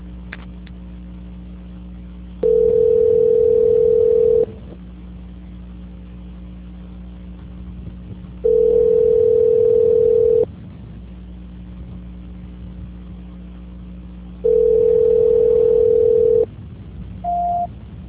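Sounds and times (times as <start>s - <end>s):
telephone ringback tone during call transfer: 2.4s - 4.6s, 8.4s - 10.5s, 14.4s - 16.5s, 17.3s - 17.7s
short higher telephone beep: 17.3s - 17.7s.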